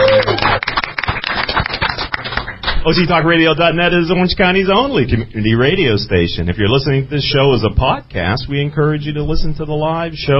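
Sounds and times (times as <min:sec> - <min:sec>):
crowd applause sound effect: 0:00.0 - 0:03.0
speech: 0:02.8 - 0:10.3.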